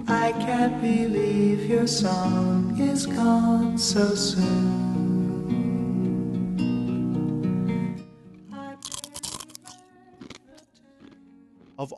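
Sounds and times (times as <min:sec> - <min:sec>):
music: 0:00.0 - 0:11.9
speech: 0:00.1 - 0:05.0
person chomping on a crunchy snack into the mic: 0:08.8 - 0:11.9.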